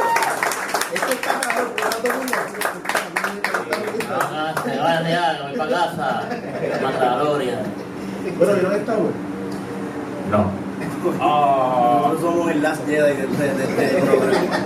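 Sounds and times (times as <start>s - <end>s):
guests clapping hands: 0.0s - 4.9s
people talking and laughing: 3.6s - 14.6s
speech: 4.6s - 9.3s, 10.3s - 14.6s.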